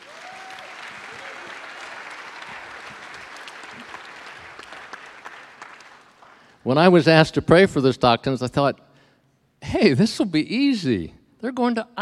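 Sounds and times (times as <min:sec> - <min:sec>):
audience applause: 0:00.0 - 0:06.6
speech: 0:06.6 - 0:08.9, 0:09.6 - 0:12.0.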